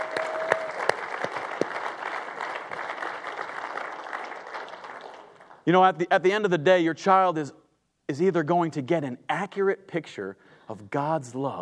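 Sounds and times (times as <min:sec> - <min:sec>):
audience applause: 0:00.0 - 0:05.6
speech: 0:05.7 - 0:11.6.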